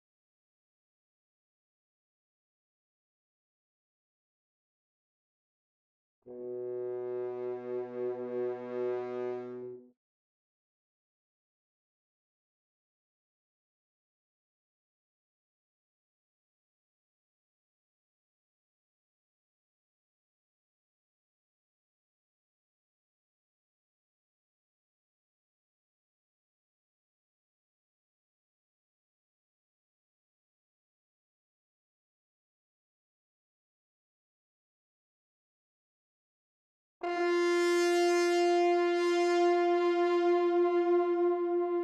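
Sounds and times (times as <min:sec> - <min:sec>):
horn: 0:06.3 - 0:09.9, 0:37.0 - 0:41.8.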